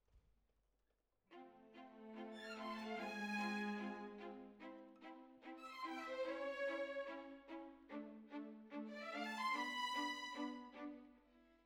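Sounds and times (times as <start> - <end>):
violins: 1.3 - 11.6.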